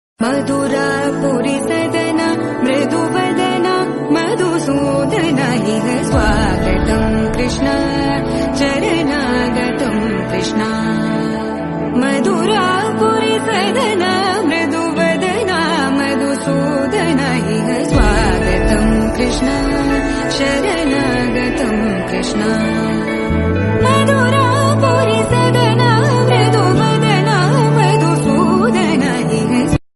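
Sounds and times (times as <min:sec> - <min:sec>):
devotional music: 0:00.2 - 0:29.8.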